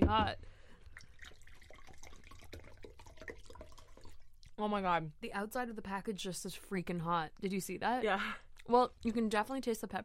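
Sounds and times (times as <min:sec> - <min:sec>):
speech: 0:00.1 - 0:00.6, 0:04.6 - 0:10.0
water pouring: 0:00.7 - 0:04.8.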